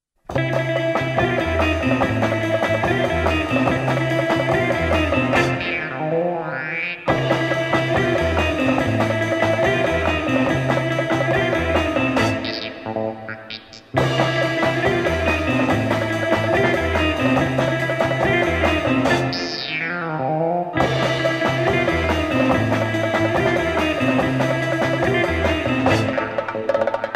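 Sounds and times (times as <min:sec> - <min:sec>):
Arabic magic music: 0:00.4 - 0:20.0, 0:20.8 - 0:27.1.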